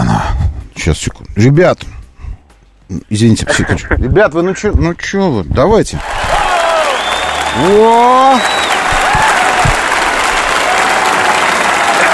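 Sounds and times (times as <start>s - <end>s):
speech: 0.8s - 2.0s, 2.9s - 6.3s, 7.6s - 8.6s
audience applause: 6.0s - 12.1s.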